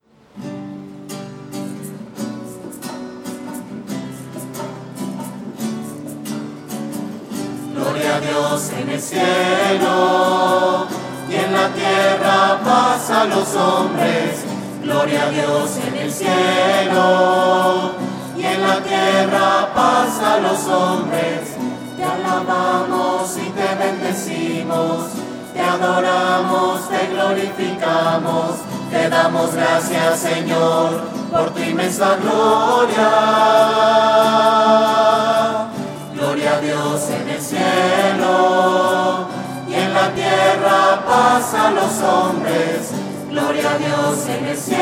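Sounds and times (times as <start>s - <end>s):
voices singing: 7.4s - 44.8s.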